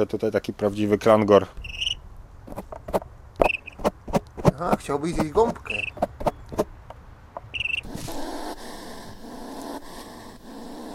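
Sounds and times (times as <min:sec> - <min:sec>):
speech: 0:00.0 - 0:01.8, 0:04.6 - 0:05.9
sharp clicks: 0:01.7 - 0:07.9
short high beep: 0:03.4 - 0:03.8, 0:05.7 - 0:06.0, 0:07.6 - 0:07.8
hedgehog defensive huffing: 0:07.8 - 0:10.9.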